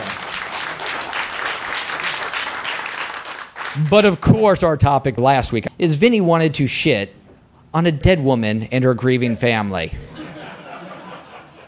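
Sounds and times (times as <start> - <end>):
crowd clapping: 0.0 - 4.3
speech: 3.8 - 10.1
laughter: 10.0 - 11.6.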